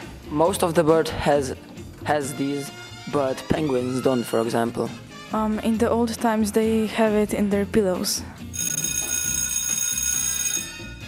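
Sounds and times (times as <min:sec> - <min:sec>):
speech: 0:00.3 - 0:08.7
school bell ringing: 0:08.6 - 0:10.9.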